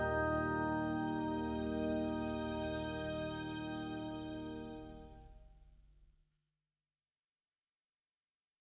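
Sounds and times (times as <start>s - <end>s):
cute bright fantasy waltz music: 0.0s - 5.2s.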